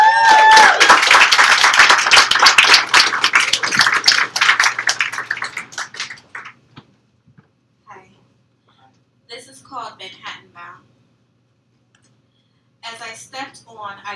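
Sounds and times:
crowd whooping: 0:00.0 - 0:01.8
crowd applause: 0:00.0 - 0:06.6.

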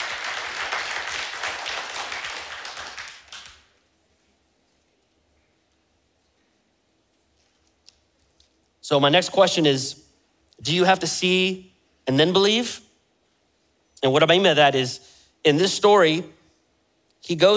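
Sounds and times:
audience clapping: 0:00.0 - 0:03.9
speech: 0:08.9 - 0:10.0, 0:10.6 - 0:12.8, 0:14.0 - 0:16.4, 0:17.2 - 0:17.5.

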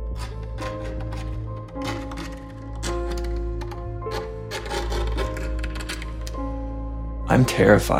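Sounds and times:
scratching on wood beneath floorboards: 0:00.1 - 0:06.4
speech: 0:07.3 - 0:07.9.

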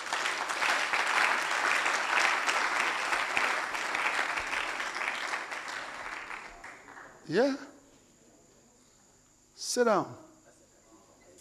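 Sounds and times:
audience clapping hands: 0:00.0 - 0:07.6
speech: 0:07.3 - 0:07.7, 0:09.8 - 0:10.2.

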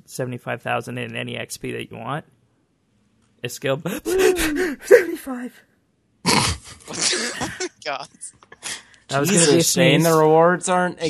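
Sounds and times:
speech: 0:00.1 - 0:02.4, 0:03.4 - 0:06.5, 0:07.9 - 0:08.5, 0:09.1 - 0:11.0
stifled sneeze: 0:06.3 - 0:07.6.

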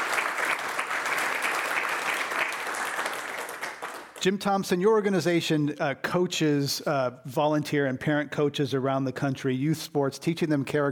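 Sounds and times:
audience applause: 0:00.0 - 0:04.2
speech: 0:04.2 - 0:10.8.

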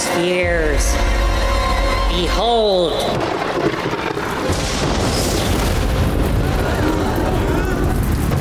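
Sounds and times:
speech: 0:00.1 - 0:01.1, 0:02.1 - 0:04.3
magical lightning strike: 0:04.3 - 0:08.3.

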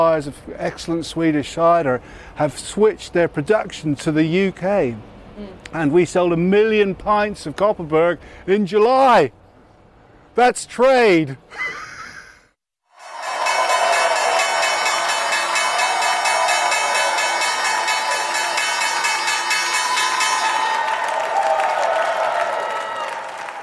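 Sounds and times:
speech: 0:00.0 - 0:09.4, 0:10.4 - 0:11.8
crowd clapping and cheering at stock exchange opening: 0:12.9 - 0:23.6
stock exchange opening bell ringing: 0:13.0 - 0:21.3.

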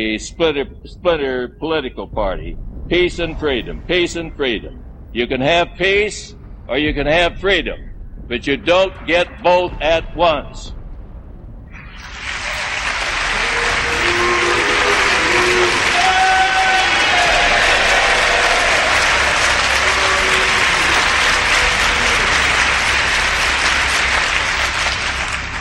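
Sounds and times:
speech: 0:00.0 - 0:10.8
booing voices: 0:11.8 - 0:24.6
audience applause: 0:11.8 - 0:25.6.

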